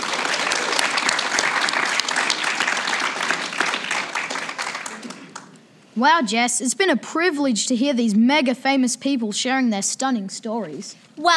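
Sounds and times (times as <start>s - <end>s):
studio audience round of applause: 0.0s - 5.6s
speech: 6.0s - 11.3s.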